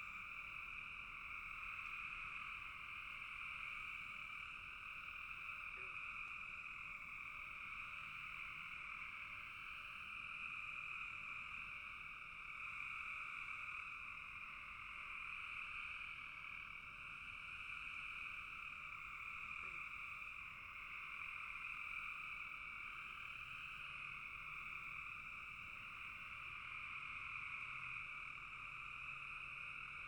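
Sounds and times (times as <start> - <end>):
frog chorus trilling: 0.0 - 30.0.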